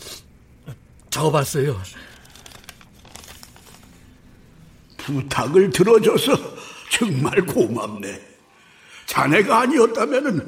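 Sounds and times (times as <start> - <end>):
low hum: 0.0 - 10.4
speech: 1.2 - 2.1, 5.1 - 8.3, 9.2 - 10.4
paper note being crumpled and crinkled: 2.0 - 4.2.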